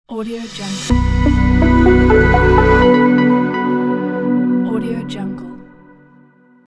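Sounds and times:
technology logo sting: 0.4s - 4.8s.

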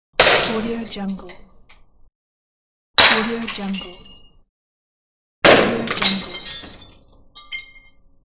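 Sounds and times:
glass breaking: 0.2s - 1.1s, 3.0s - 4.3s, 5.4s - 8.0s.

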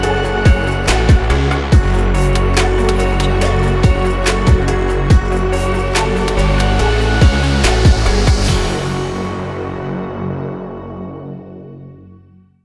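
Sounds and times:
experimental dubstep: 0.0s - 9.9s.

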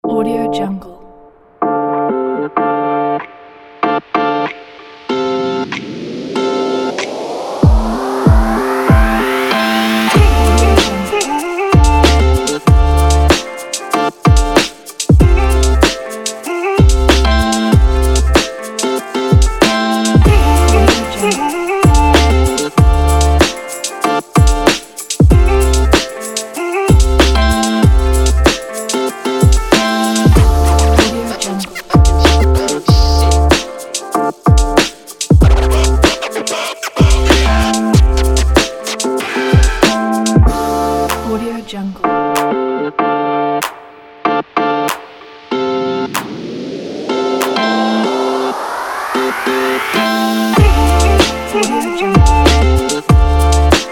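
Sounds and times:
hip hop music: 1.6s - 53.9s.

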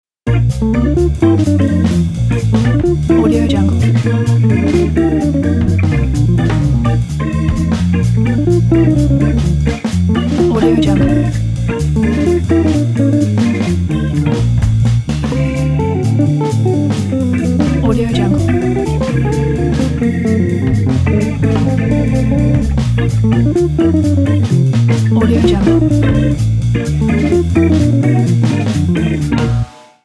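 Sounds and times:
jazz music: 0.3s - 30.0s.

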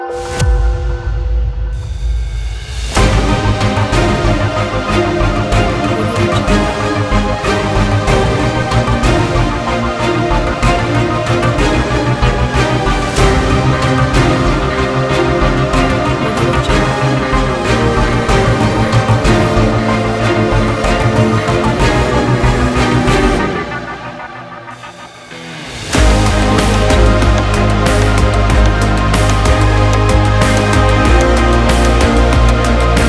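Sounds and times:
strained electronic epic music: 0.1s - 33.0s.

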